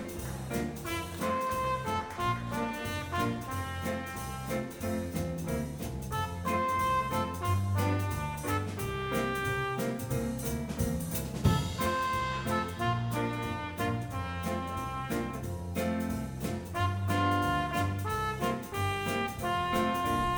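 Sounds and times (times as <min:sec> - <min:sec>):
young brass players playing: 0:00.2 - 0:10.6, 0:11.4 - 0:20.3.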